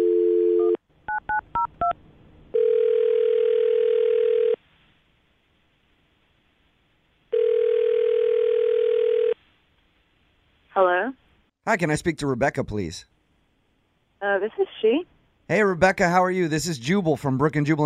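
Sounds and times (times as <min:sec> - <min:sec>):
telephone dial tone: 0:00.0 - 0:01.9, 0:02.5 - 0:04.6, 0:07.3 - 0:09.4
speech: 0:11.8 - 0:13.1, 0:14.4 - 0:17.8.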